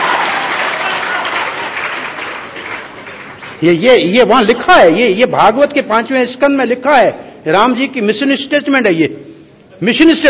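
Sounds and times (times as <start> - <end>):
audience clapping: 0.0 - 4.0
speech: 3.6 - 10.2.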